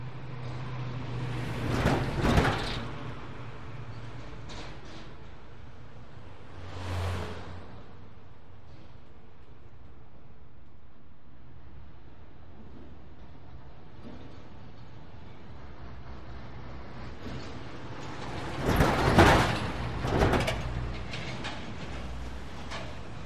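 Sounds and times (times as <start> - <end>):
cars passing by in light traffic: 0.0 - 10.7, 11.5 - 23.2.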